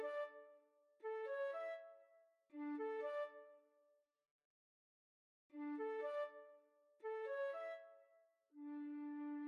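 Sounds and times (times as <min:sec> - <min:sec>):
flute duet: 0:00.0 - 0:00.5, 0:01.1 - 0:03.5, 0:05.6 - 0:09.4.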